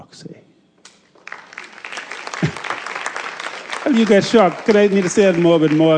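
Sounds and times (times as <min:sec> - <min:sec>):
speech: 0:00.1 - 0:00.4, 0:03.9 - 0:05.9
audience applause: 0:01.2 - 0:05.9.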